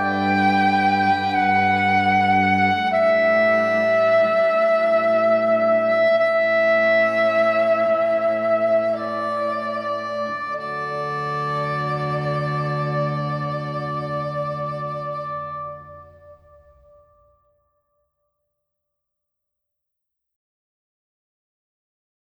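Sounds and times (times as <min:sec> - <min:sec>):
string quartet: 0:00.0 - 0:16.4.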